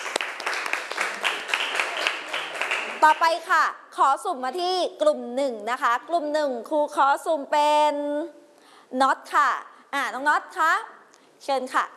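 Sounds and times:
class of pupils applauding a classmate: 0.0s - 3.2s
speech: 3.0s - 11.9s.

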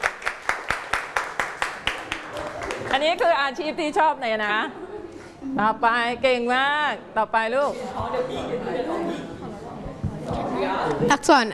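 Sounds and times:
children clapping hands: 0.0s - 3.0s
speech: 2.9s - 4.8s, 5.4s - 9.3s, 10.3s - 11.5s.

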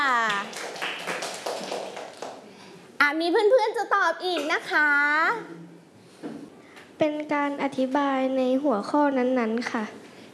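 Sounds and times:
children clapping: 0.1s - 2.5s
speech: 3.2s - 5.7s, 7.0s - 10.0s.

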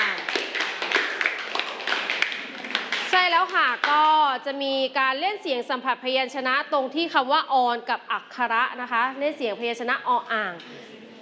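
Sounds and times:
hand clapping for a group: 0.0s - 4.1s
speech: 3.4s - 11.2s.

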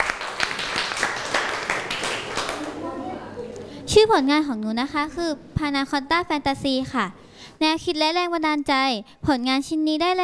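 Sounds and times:
audience applause: 0.0s - 2.9s
faint murmur of voices: 2.5s - 4.0s
speech: 3.9s - 10.2s.

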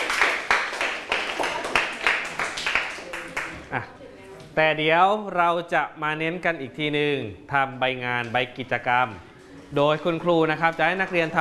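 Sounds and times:
group of students clapping in rhythm: 0.0s - 3.7s
speech: 3.7s - 4.0s, 4.6s - 11.3s.

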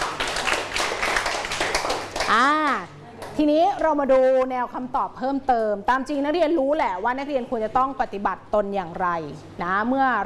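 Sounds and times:
students clapping for classmates: 0.0s - 2.4s
speech: 2.3s - 2.8s, 3.4s - 10.2s.

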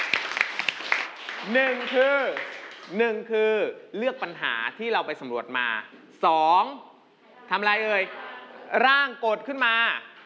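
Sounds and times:
classroom clapping for a classmate: 0.0s - 3.0s
speech: 1.4s - 6.9s, 7.5s - 10.1s.

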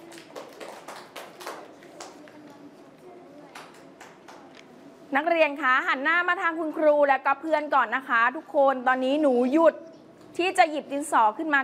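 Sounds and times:
students clapping for a classmate: 0.0s - 2.6s, 3.5s - 4.6s
speech: 5.1s - 9.8s, 10.4s - 11.6s.

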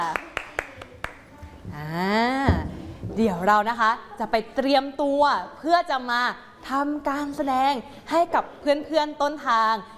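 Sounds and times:
audience clapping: 0.0s - 1.3s
speech: 3.2s - 9.9s.

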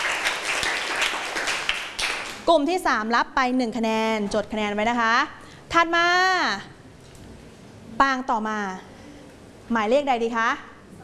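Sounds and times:
students clapping: 0.0s - 2.4s
speech: 2.5s - 6.8s, 8.0s - 8.9s, 9.7s - 10.7s.

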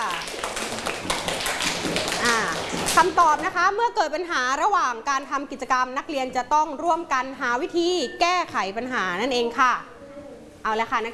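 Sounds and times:
classmates clapping in a classroom: 0.0s - 3.2s
speech: 3.0s - 9.9s, 10.6s - 11.1s.

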